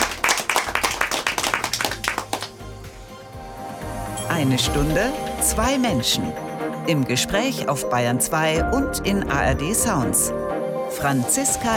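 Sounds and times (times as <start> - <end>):
studio audience applauding: 0.0 - 2.7
speech: 4.4 - 11.7.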